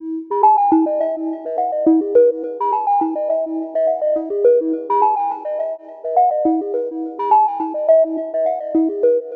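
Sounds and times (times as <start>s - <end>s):
melody: 0.0s - 9.3s.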